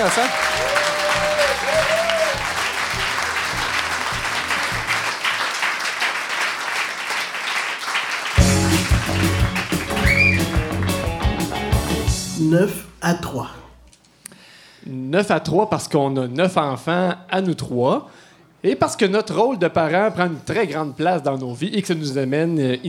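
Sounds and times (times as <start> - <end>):
speech: 0.0 - 2.1, 12.4 - 13.6, 14.9 - 22.8
audience applause: 0.0 - 11.9
brief whistles: 10.0 - 10.6.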